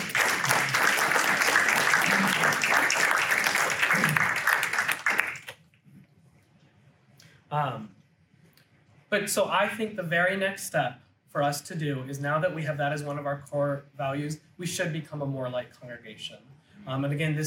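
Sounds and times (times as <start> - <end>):
audience applause: 0.0 - 5.5
speech: 9.1 - 17.4.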